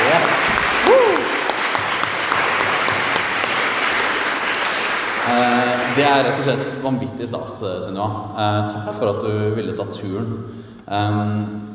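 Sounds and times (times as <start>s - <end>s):
audience applause: 0.0s - 6.7s
speech: 6.0s - 11.7s.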